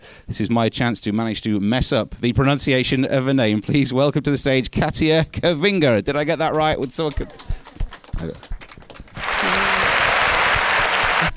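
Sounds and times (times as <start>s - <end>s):
speech: 0.3s - 7.6s, 8.2s - 8.6s
audience applause: 7.1s - 11.3s.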